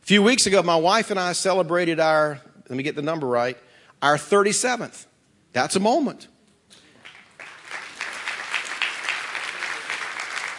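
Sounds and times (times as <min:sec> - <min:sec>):
speech: 0:00.1 - 0:06.3
audience applause: 0:07.0 - 0:10.5.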